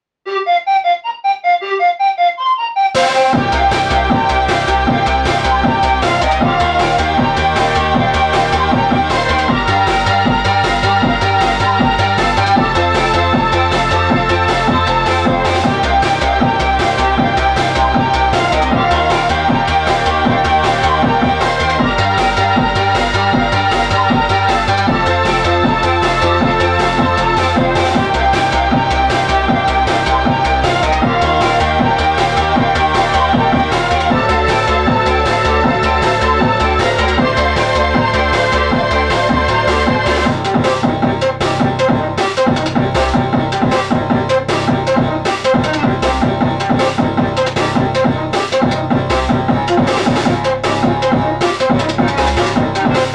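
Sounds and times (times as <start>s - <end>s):
chiptune music: 0.3s - 53.1s.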